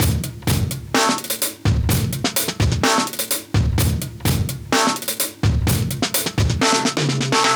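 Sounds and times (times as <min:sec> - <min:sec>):
live drum breaks: 0:00.0 - 0:07.5.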